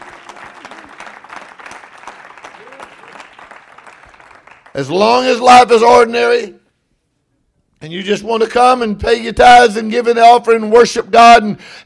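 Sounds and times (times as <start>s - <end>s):
audience clapping hands: 0.0s - 5.4s
speech: 4.8s - 6.6s, 7.8s - 11.8s.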